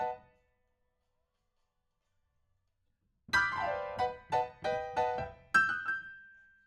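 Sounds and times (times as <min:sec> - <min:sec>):
rock and roll piano: 0:00.0 - 0:00.2, 0:03.3 - 0:06.4.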